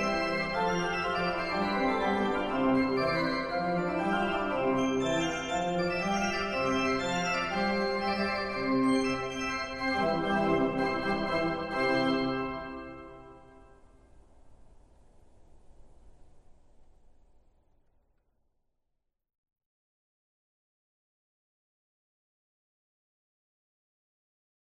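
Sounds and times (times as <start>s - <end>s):
barrel organ playing pieces: 0.0s - 13.7s.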